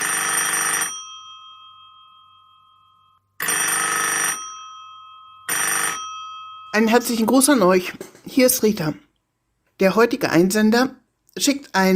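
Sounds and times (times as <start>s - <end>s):
telephone ringing: 0.0s - 8.6s
speech: 6.8s - 9.0s, 9.8s - 11.9s.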